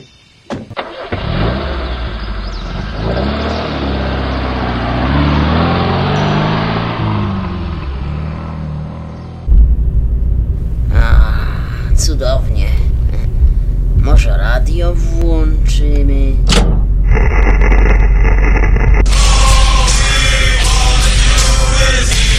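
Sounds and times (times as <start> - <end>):
car engine starting as the car drives off: 0.5 - 22.3
heavy rumble: 4.6 - 22.3.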